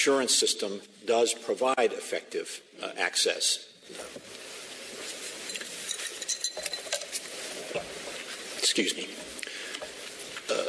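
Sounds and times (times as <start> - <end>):
speech: 0.0 - 4.4, 8.6 - 9.4
low hiss: 0.0 - 10.6
ice tinkling in water glasses: 5.4 - 7.2.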